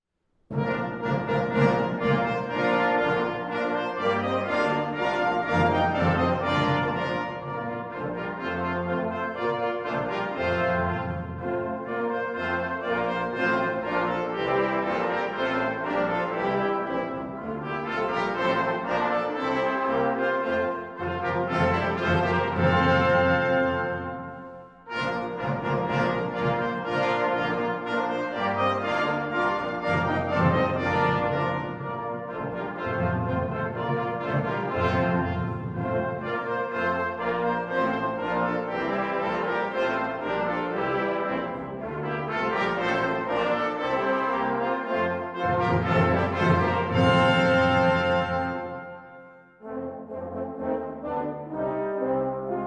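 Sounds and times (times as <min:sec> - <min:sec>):
cimbasso march: 0:00.5 - 0:52.6.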